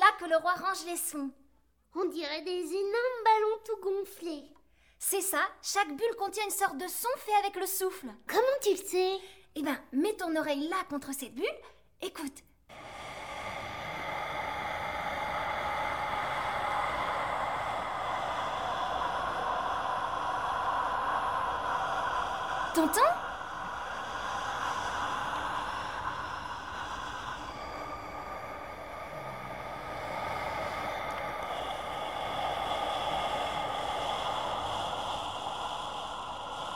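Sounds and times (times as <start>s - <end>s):
speech: 0.2s - 12.8s, 22.8s - 23.2s
calm steady wind blowing: 12.7s - 36.7s.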